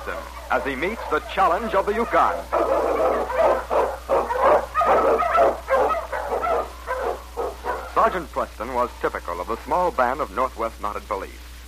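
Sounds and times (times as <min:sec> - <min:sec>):
speech: 0:00.0 - 0:02.9, 0:08.0 - 0:11.5
sled dog barking: 0:00.0 - 0:08.1.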